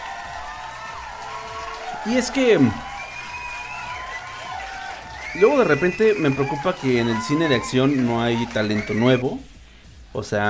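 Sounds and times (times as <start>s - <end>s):
crowd applause: 0.0s - 9.3s
speech: 2.0s - 2.9s, 5.4s - 9.5s, 10.1s - 10.4s.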